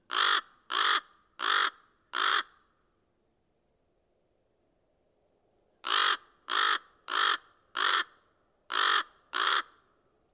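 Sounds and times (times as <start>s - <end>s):
lone raven calling: 0.1s - 2.7s, 5.8s - 9.9s.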